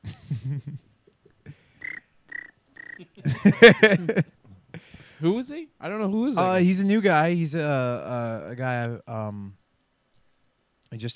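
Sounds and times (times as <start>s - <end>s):
laughter: 0.0s - 0.8s, 3.0s - 4.3s
speech: 0.5s - 0.9s, 3.2s - 4.3s, 5.2s - 9.6s, 10.9s - 11.1s
cricket chirping sound effect: 1.8s - 4.0s.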